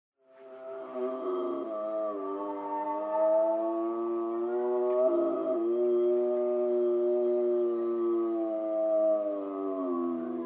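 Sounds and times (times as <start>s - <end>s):
gray wolves howling in a wavering chorus in Schorfheide, Germany: 0.3s - 10.4s.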